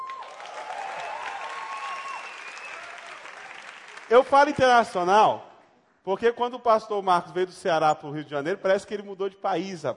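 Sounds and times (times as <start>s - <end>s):
faint whistles and cheers: 0.0s - 3.8s
audience applause: 0.0s - 4.6s
speech: 4.1s - 9.9s.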